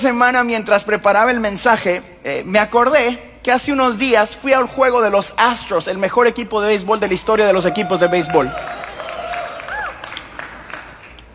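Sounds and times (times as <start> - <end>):
speech: 0.0 - 8.8
people cheering and whooping: 7.2 - 11.1
audience applause: 7.7 - 11.3.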